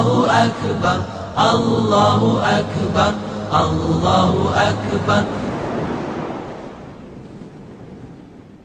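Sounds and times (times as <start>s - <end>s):
nasheed singing: 0.0s - 6.2s.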